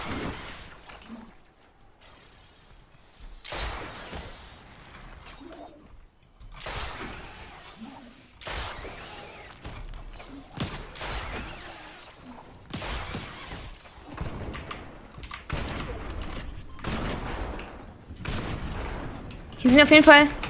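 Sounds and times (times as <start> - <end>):
Fortnite video game weapon gunfire: 3.3 - 5.6, 6.6 - 20.4
speech: 19.7 - 20.4.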